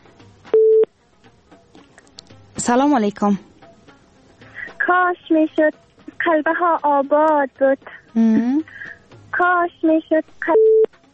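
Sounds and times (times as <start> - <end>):
telephone tone while a call-in is placed: 0.5 - 0.9, 10.4 - 10.9
speech: 2.6 - 3.5, 4.9 - 8.8, 9.4 - 10.7.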